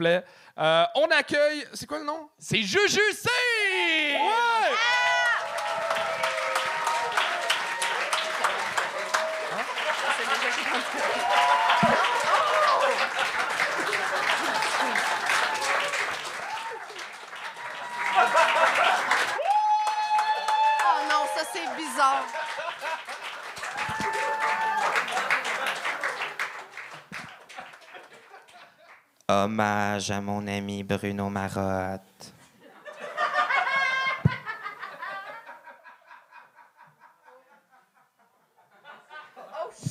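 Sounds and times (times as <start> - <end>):
speech: 0.0 - 5.2, 10.2 - 15.1, 21.4 - 23.0, 29.3 - 32.1
whoops and shouted voices: 3.6 - 9.7, 11.0 - 13.1, 14.4 - 18.7, 19.4 - 22.7, 23.6 - 25.1
crowd applauding for comedian: 4.2 - 29.1
laughter: 6.1 - 16.2, 17.8 - 19.4, 21.1 - 29.0, 32.6 - 39.8.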